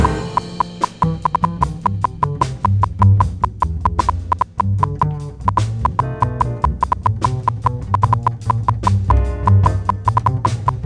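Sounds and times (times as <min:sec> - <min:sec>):
jazz music: 0:00.0 - 0:10.8.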